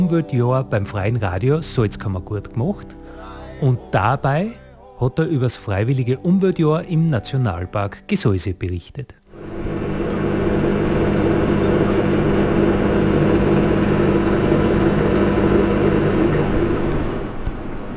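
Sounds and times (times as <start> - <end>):
speech: 0.0 - 9.2
dishwasher running in a small hunting lodge in a national park: 9.4 - 17.9.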